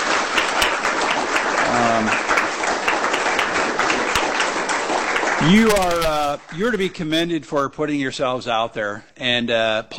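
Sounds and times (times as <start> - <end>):
audience round of applause: 0.0 - 7.3
speech: 5.4 - 9.9.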